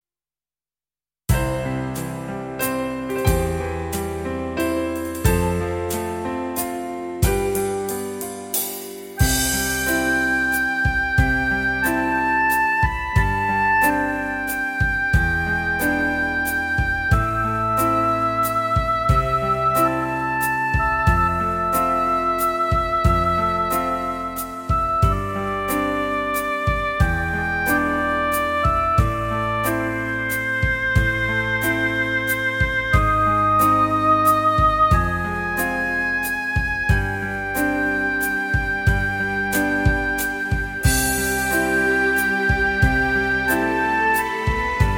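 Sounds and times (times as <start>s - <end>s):
waltz music: 1.3s - 44.9s.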